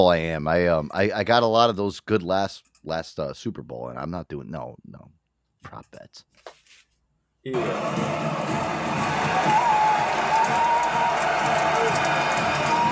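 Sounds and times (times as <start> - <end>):
speech: 0.0 - 6.6, 7.4 - 9.8, 10.5 - 12.7
fans cheering: 7.5 - 12.9.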